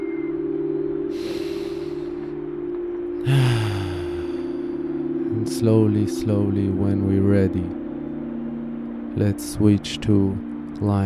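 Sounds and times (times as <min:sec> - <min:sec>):
low humming tone: 0:00.0 - 0:11.0
deep breathing during a relaxation meditation: 0:01.1 - 0:02.4, 0:03.2 - 0:04.9
speech: 0:05.6 - 0:07.8, 0:09.2 - 0:11.0.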